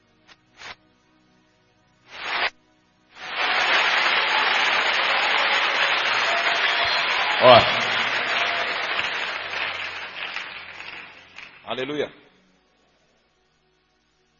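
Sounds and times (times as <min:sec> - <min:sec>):
audience clapping: 0:02.2 - 0:02.5, 0:03.2 - 0:12.0
speech: 0:07.5 - 0:07.7, 0:11.8 - 0:12.2.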